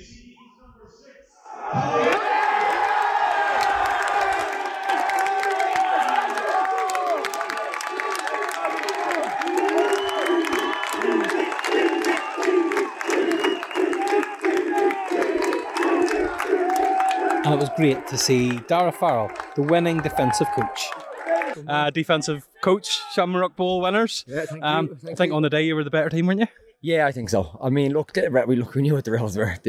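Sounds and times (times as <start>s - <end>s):
crowd cheering: 1.4s - 23.4s
speech: 17.6s - 20.9s, 21.6s - 29.6s.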